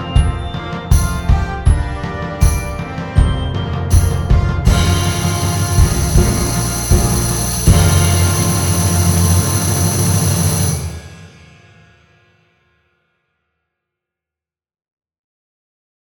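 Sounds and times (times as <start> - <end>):
Schlagwerk glockenspiel: 0.0 - 11.4.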